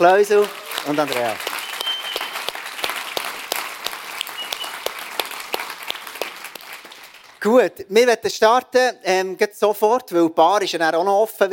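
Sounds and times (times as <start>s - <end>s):
speech: 0.0s - 1.5s, 7.4s - 11.5s
audience applauding: 0.0s - 7.5s.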